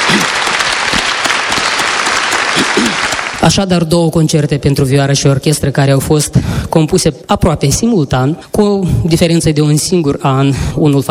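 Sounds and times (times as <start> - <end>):
audience applause: 0.0 - 3.5
speech: 2.8 - 11.0.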